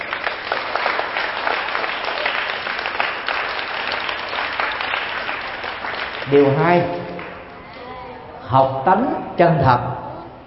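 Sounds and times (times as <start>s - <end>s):
audience applause: 0.0s - 7.6s
speech: 6.3s - 7.0s, 8.5s - 10.0s.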